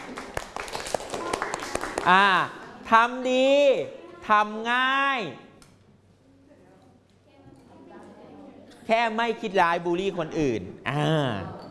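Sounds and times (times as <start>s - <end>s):
applause for a classmate: 0.0s - 2.5s
speech: 2.0s - 5.5s, 8.9s - 11.6s.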